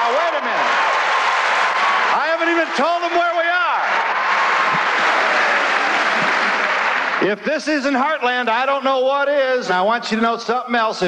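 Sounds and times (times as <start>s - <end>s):
auditorium audience cheering: 0.0s - 8.3s
speech: 2.4s - 4.1s, 7.2s - 11.0s.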